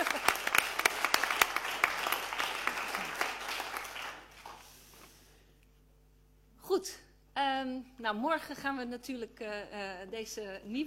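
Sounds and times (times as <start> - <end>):
applause: 0.0 - 4.7
speech: 7.6 - 10.8.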